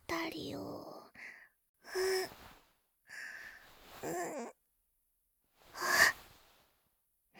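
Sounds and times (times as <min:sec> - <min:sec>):
ASMR massage sounds: 0:02.0 - 0:04.5, 0:05.6 - 0:06.8.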